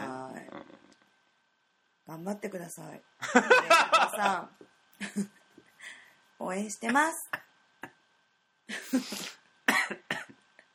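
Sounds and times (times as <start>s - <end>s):
faint steady whine: 0.0s - 10.7s
speech: 2.1s - 5.4s, 6.4s - 7.4s, 8.9s - 9.3s
laughter: 3.2s - 4.4s
person coughing after choking: 9.0s - 10.4s.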